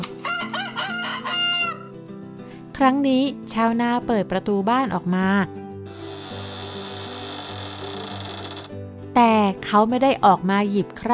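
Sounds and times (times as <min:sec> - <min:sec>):
rooster crowing: 0:00.2 - 0:01.9
speech: 0:02.8 - 0:05.6, 0:09.2 - 0:11.1.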